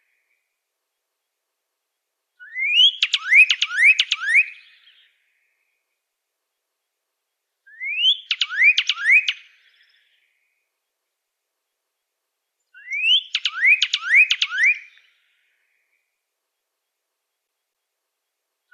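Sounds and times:
Pyrrhuloxia singing rising whistles: 2.4s - 5.0s, 7.7s - 10.2s, 12.8s - 15.2s.

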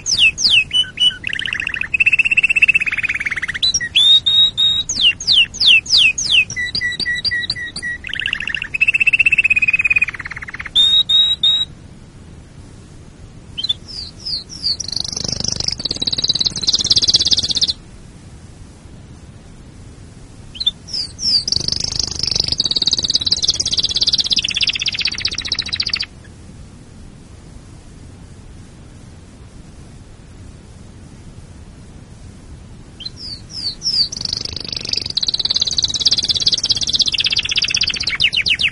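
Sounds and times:
canary trilling song: 0.0s - 11.7s, 13.6s - 17.8s, 20.5s - 26.3s, 33.0s - 38.7s.

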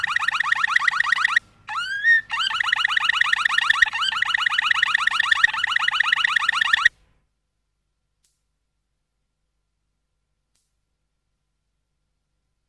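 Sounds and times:
Waterslager canary song: 0.0s - 6.9s.

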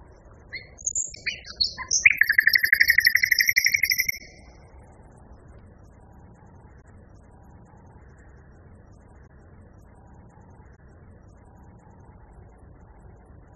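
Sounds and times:
common nightingale singing: 0.5s - 4.5s.

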